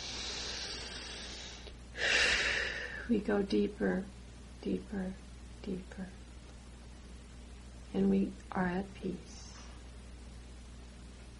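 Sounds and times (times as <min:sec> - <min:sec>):
deep breath during a guided meditation: 0:00.0 - 0:03.1
speech: 0:03.1 - 0:06.2, 0:07.9 - 0:09.4.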